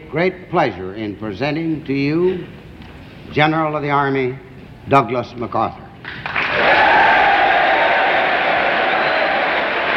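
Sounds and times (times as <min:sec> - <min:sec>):
speech: 0:00.1 - 0:02.6, 0:03.2 - 0:05.8
congressional applause: 0:06.2 - 0:09.9
cheering: 0:06.4 - 0:09.9.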